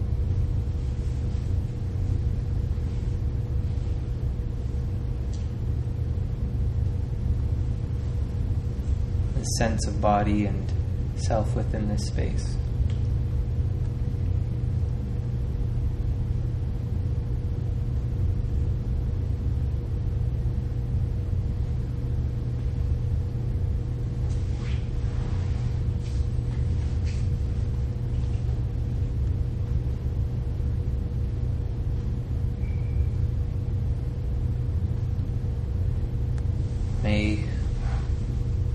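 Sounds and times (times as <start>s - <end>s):
faint tonal whine: 0.0s - 38.7s
fans humming: 0.0s - 38.7s
speech: 9.5s - 12.6s.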